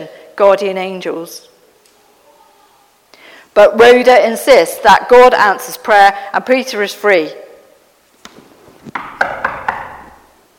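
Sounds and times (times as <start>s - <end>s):
speech: 0.0s - 1.5s, 3.6s - 7.4s
knocking on a door: 8.9s - 10.2s.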